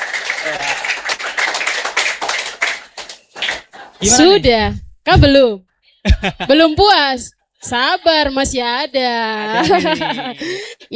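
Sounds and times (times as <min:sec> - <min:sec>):
audience applause: 0:00.0 - 0:04.4
laughter: 0:00.0 - 0:04.7, 0:06.1 - 0:06.8, 0:09.2 - 0:10.9
speech: 0:00.4 - 0:00.9, 0:04.0 - 0:10.9.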